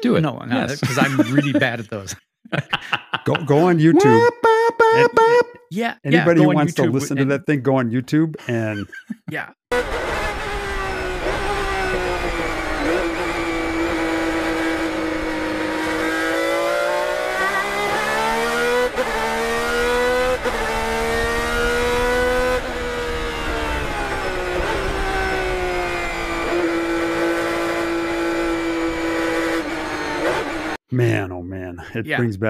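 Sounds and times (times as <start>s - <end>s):
speech: 0.0s - 9.8s, 30.9s - 32.4s
laughter: 0.6s - 5.5s, 6.1s - 7.6s, 8.2s - 9.4s
Ferrari engine revving: 9.7s - 30.8s.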